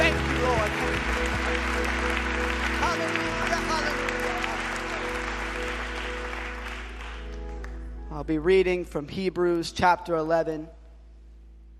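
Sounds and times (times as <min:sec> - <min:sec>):
audience clapping: 0:00.0 - 0:07.9
speech: 0:08.3 - 0:10.8.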